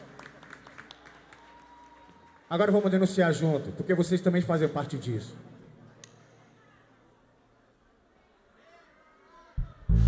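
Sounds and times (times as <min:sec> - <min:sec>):
audience applause: 0:00.0 - 0:02.9
speech: 0:02.5 - 0:05.5.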